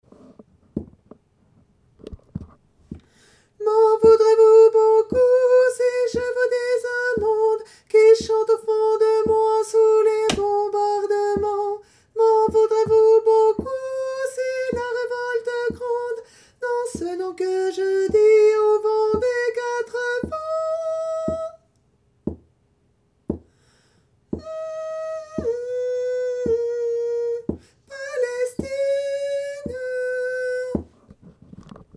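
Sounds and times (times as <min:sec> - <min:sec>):
tenor singing: 0:03.6 - 0:21.6, 0:24.4 - 0:31.0.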